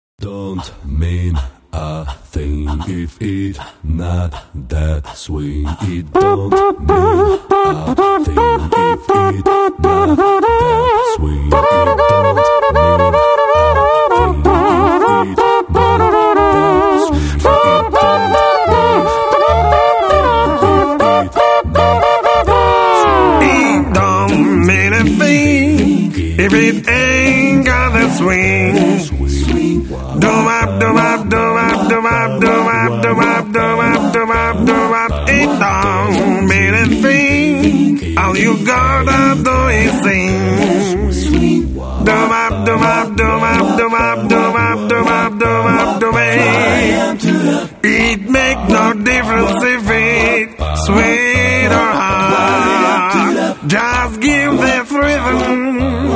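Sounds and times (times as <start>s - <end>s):
a cappella singing: 0.2s - 56.1s.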